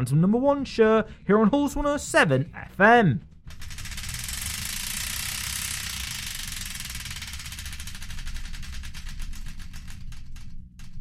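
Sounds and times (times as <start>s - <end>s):
speech: 0.0s - 3.6s
noisy bed: 2.5s - 10.9s
Wheel of Destiny spinning sound effect: 3.5s - 10.9s.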